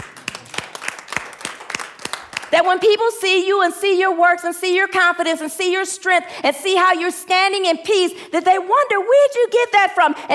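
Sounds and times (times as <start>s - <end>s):
audience clapping in rhythm: 0.0s - 2.8s
speech: 2.5s - 10.3s.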